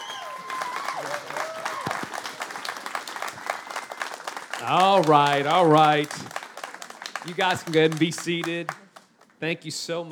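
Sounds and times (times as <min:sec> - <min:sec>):
crowd whooping and cheering: 0:00.0 - 0:05.0
crowd applauding: 0:00.0 - 0:09.4
speech: 0:01.0 - 0:01.6, 0:04.6 - 0:06.4, 0:07.2 - 0:08.8, 0:09.4 - 0:10.1.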